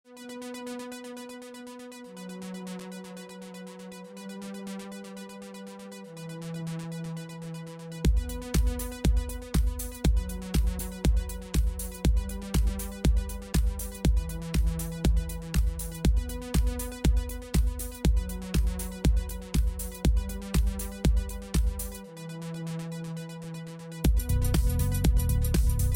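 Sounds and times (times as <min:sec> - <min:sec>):
dance music: 0:08.0 - 0:22.2, 0:23.6 - 0:25.9.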